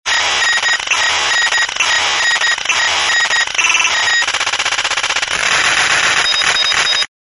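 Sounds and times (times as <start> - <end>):
coded communication transmission: 0.1 - 7.1.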